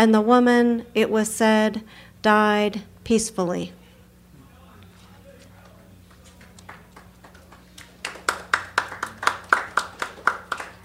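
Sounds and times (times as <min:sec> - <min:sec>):
speech: 0:00.0 - 0:03.8
audience clapping after a poem: 0:06.0 - 0:10.8.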